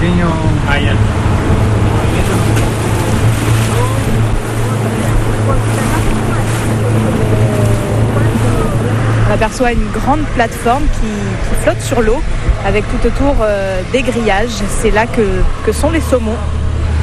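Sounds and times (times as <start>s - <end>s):
boat motor running on water: 0.0s - 17.0s
speech: 9.4s - 16.5s.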